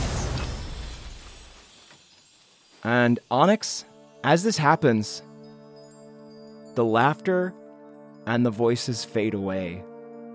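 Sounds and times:
crystal shattering: 0.0s - 6.0s
speech: 2.8s - 5.3s, 6.8s - 7.6s, 8.2s - 9.9s.

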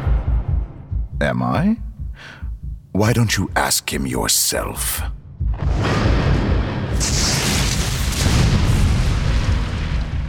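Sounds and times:
speech: 1.2s - 6.4s, 7.0s - 7.4s
thunder crash: 5.5s - 10.2s
lightning bolt strike: 5.6s - 10.2s.

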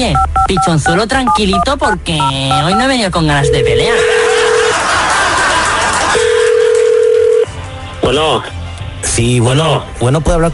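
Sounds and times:
speech: 0.0s - 4.2s, 8.1s - 10.5s
telephone dial tone: 3.4s - 4.6s, 6.2s - 7.5s
laughter: 3.8s - 6.9s.

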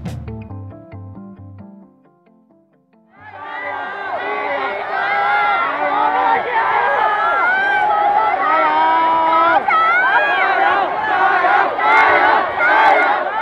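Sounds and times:
protest crowd shouting: 3.2s - 13.4s.

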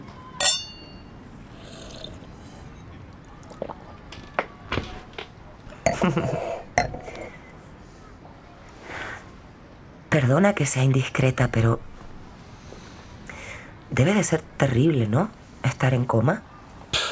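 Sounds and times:
tableware knocking and clattering at a quiet table: 0.4s - 1.0s
glasses clinking in a toast: 0.4s - 1.1s
speech: 6.0s - 6.6s, 10.2s - 11.9s, 14.0s - 16.5s.

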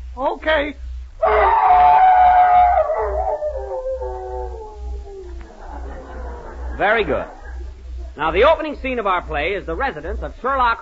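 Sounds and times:
speech: 0.2s - 0.8s, 6.8s - 7.4s, 8.2s - 10.8s
man imitating a hound's howl: 1.2s - 5.4s
laughter: 5.3s - 8.2s.

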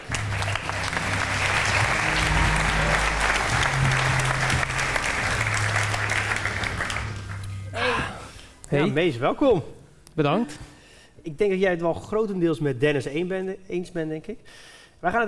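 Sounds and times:
applause greeting a podcast guest: 0.0s - 7.6s
low sustained tone: 0.3s - 5.8s
speech: 8.7s - 15.2s.

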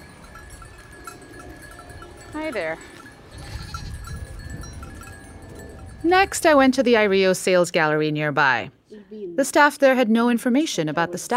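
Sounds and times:
goat bells tinkling as goats graze: 0.0s - 6.7s
speech: 2.3s - 3.0s, 6.0s - 11.3s.

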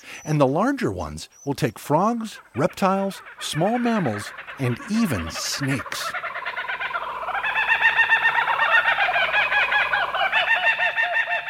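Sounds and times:
speech: 0.0s - 6.2s
Australian laughing kookaburra call: 2.4s - 11.4s.

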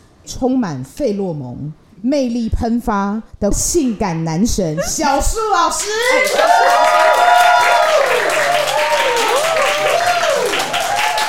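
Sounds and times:
speech: 0.3s - 7.4s
applause: 5.8s - 11.2s
live audience screaming and cheering: 6.0s - 11.2s.

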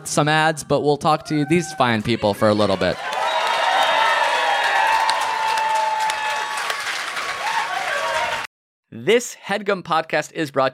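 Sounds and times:
speech: 0.0s - 3.1s, 9.0s - 10.7s
cheers and whoops: 2.7s - 8.5s
live audience applause: 2.9s - 8.5s.

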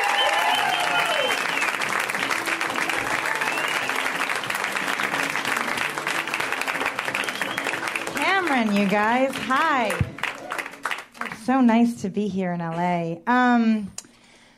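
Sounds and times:
audience applauding to welcome a comedian to the stage: 0.0s - 11.5s
speech: 8.6s - 10.0s, 11.5s - 14.0s.

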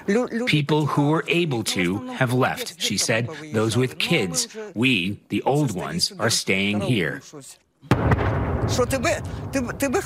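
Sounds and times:
speech: 0.1s - 10.0s
heavy artillery blast: 7.9s - 9.8s.

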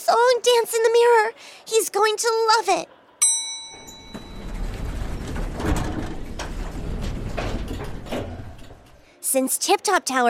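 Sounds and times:
speech: 0.1s - 3.0s, 9.3s - 10.2s
elevator chime: 3.2s - 5.6s
elevator car and doors rumbling: 3.2s - 9.2s
soft clicks and clunks of an elevator: 3.7s - 9.0s.

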